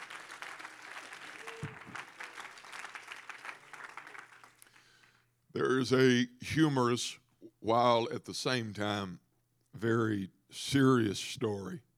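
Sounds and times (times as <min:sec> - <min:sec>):
audience clapping hands: 0:00.0 - 0:05.2
speech: 0:05.6 - 0:09.2, 0:09.8 - 0:11.9.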